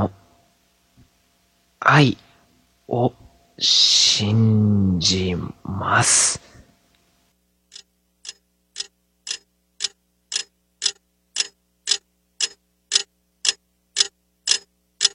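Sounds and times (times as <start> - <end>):
speech: 1.9 - 2.2, 2.9 - 6.5
cheap alarm clock ticking: 7.7 - 15.1.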